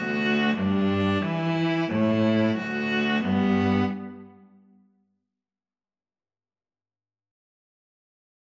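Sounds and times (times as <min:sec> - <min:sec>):
string trio playing: 0:00.0 - 0:04.4.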